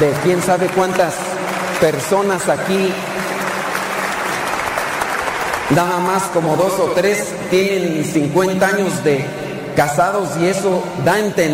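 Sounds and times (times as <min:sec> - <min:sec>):
speech: 0:00.0 - 0:01.2, 0:01.8 - 0:03.1, 0:05.7 - 0:11.5
audience applause: 0:00.0 - 0:06.4.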